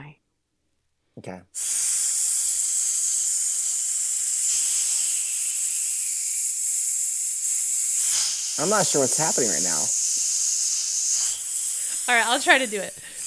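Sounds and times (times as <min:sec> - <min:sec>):
speech: 0:01.2 - 0:01.9, 0:08.6 - 0:10.0, 0:12.1 - 0:13.1
slithering snake hissing: 0:01.6 - 0:13.2.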